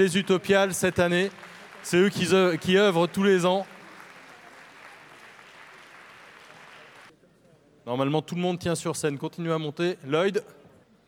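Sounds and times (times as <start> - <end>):
speech: 0.0 - 3.8, 7.9 - 10.6
audience applause: 0.0 - 7.1.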